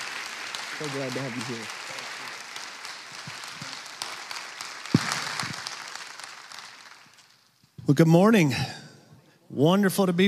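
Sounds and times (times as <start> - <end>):
church audience applause: 0.0 - 7.5
speech: 0.8 - 1.8, 7.9 - 8.8, 9.5 - 10.2.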